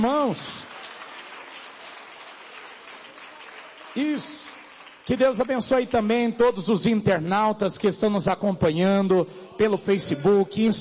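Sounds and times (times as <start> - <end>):
speech: 0.0 - 0.7, 4.0 - 10.7
audience applause: 0.0 - 5.5.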